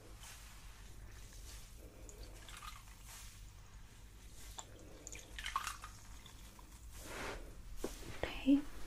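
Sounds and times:
damp cloth and sponge washing a face during a spa facial: 0.2s - 8.0s
brief watery splashes: 2.0s - 3.4s, 4.4s - 6.8s
speech: 8.5s - 8.7s.

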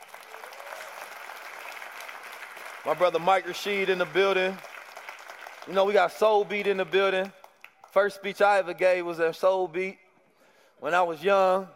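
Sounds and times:
audience applause at a speaking event: 0.0s - 7.0s
speech: 2.8s - 4.7s, 5.6s - 10.0s, 10.8s - 11.7s.

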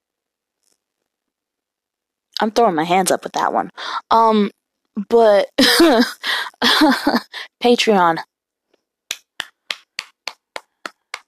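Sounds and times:
speech: 2.4s - 8.3s
hand clapping: 9.1s - 11.2s.

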